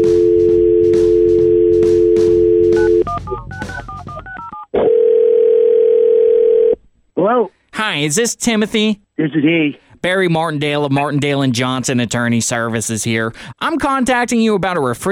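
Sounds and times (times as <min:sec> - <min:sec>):
telephone ringing: 0:00.0 - 0:06.8
speech: 0:07.8 - 0:15.0.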